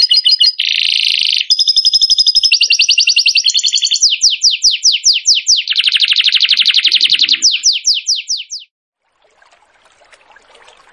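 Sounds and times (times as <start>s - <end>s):
bird song: 0.0s - 8.7s.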